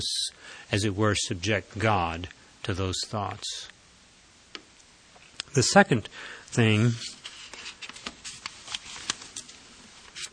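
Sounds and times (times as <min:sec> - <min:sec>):
speech: 0:00.0 - 0:03.8, 0:05.5 - 0:07.2
paper notes clipped together with a paper clip rustling: 0:06.6 - 0:10.3.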